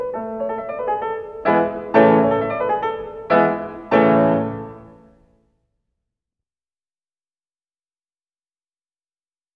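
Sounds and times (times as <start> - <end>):
piano sonata: 0.0 - 5.4.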